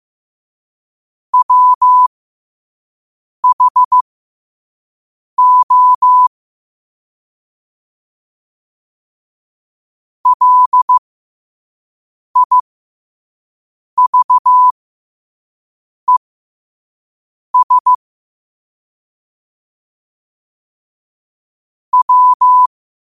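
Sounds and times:
morse code at 5 wpm: 0:01.4 - 0:02.1, 0:03.4 - 0:04.0, 0:05.4 - 0:06.3, 0:10.3 - 0:11.0, 0:12.4 - 0:12.6, 0:14.0 - 0:14.7, 0:17.6 - 0:18.0, 0:22.0 - 0:22.7.

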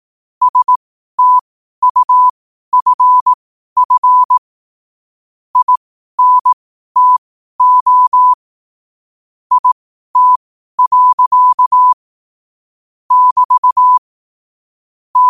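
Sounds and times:
morse code at 5 wpm: 0:00.4 - 0:04.4, 0:05.6 - 0:08.4, 0:09.5 - 0:12.0, 0:13.1 - 0:14.0.

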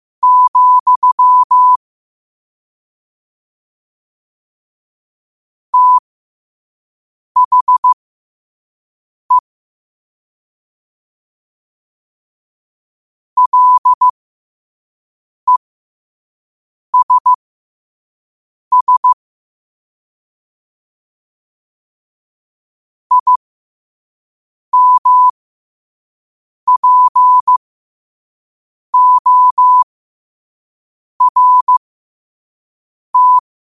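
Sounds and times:
morse code at 5 wpm: 0:00.2 - 0:01.8, 0:05.8 - 0:06.0, 0:07.4 - 0:08.0, 0:13.4 - 0:14.1, 0:17.0 - 0:17.4, 0:18.7 - 0:19.2, 0:23.1 - 0:23.4, 0:24.8 - 0:25.3, 0:26.7 - 0:27.6, 0:29.0 - 0:29.9, 0:31.2 - 0:31.8, 0:33.2 - 0:33.4.

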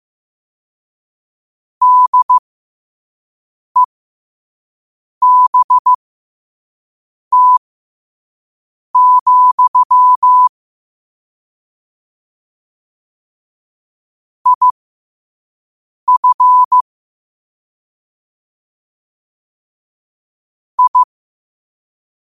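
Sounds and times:
morse code at 5 wpm: 0:01.8 - 0:02.4, 0:05.2 - 0:06.0, 0:07.3 - 0:07.6, 0:09.0 - 0:10.5, 0:14.5 - 0:14.7, 0:16.1 - 0:16.8, 0:20.8 - 0:21.1.

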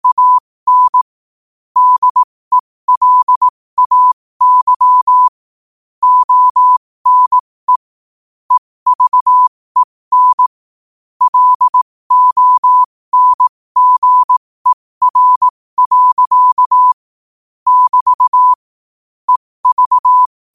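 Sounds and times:
morse code at 5 wpm: 0:00.0 - 0:01.0, 0:01.8 - 0:05.3, 0:06.0 - 0:07.9, 0:08.5 - 0:10.5, 0:11.2 - 0:17.0, 0:17.7 - 0:18.6, 0:19.3 - 0:20.5.

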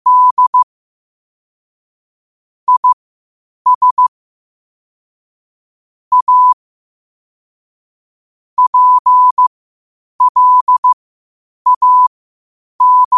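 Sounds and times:
morse code at 5 wpm: 0:00.1 - 0:00.6, 0:02.7 - 0:03.0, 0:03.7 - 0:04.1, 0:06.1 - 0:06.6, 0:08.6 - 0:09.4, 0:10.2 - 0:11.0, 0:11.7 - 0:12.1, 0:12.8 - 0:13.1.

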